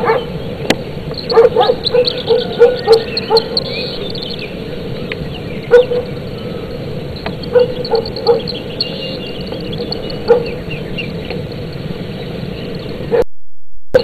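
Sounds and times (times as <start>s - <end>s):
husky and Belgian shepherd dogs: 0.0s - 0.4s, 1.2s - 4.9s, 5.6s - 6.3s, 7.2s - 11.5s, 13.0s - 13.2s.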